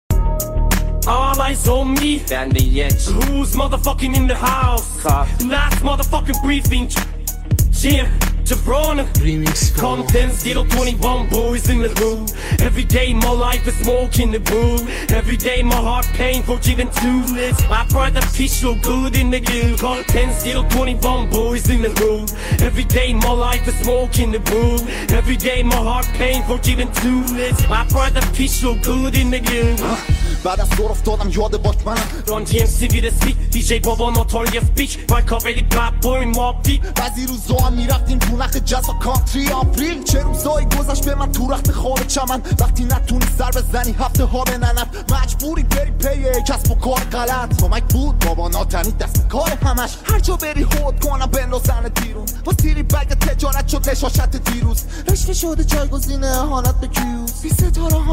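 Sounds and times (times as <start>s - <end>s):
AI-generated hip hop music: 0.0s - 58.1s.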